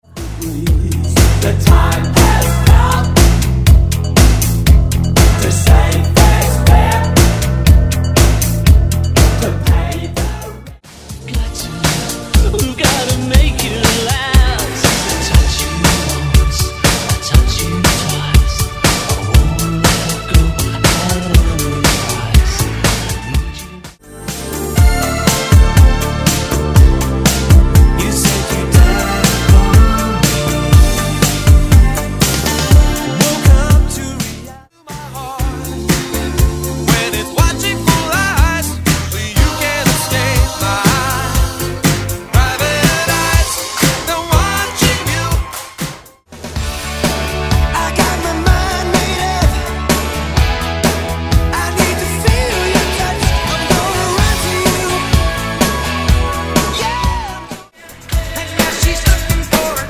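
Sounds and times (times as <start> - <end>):
1980s rock funk new wave megamix: 0.0 - 59.8.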